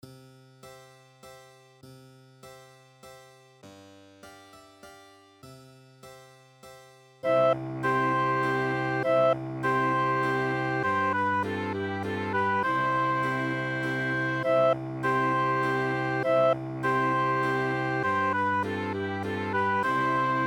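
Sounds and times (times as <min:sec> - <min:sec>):
minuet: 0:07.2 - 0:20.4.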